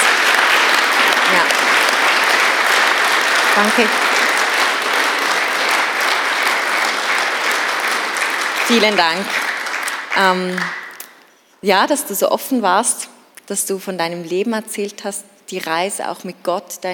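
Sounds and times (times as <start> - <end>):
audience applause: 0.0 - 11.1
speech: 3.6 - 4.1, 8.7 - 9.5, 10.2 - 10.8, 11.6 - 16.9.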